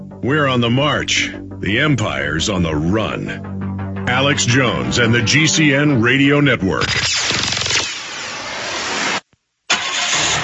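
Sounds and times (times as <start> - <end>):
speech: 0.2 - 3.5, 4.1 - 7.3
car engine cranking and starting: 2.9 - 7.8, 9.7 - 10.4.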